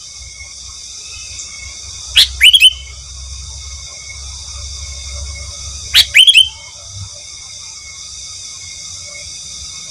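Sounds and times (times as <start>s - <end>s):
sooty-headed bulbul song in short liquid phrases: 1.0s - 3.0s, 5.4s - 7.4s.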